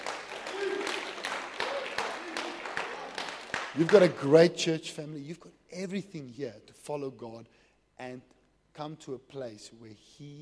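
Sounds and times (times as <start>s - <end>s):
audience clapping: 0.0s - 4.4s
speech: 3.8s - 10.4s.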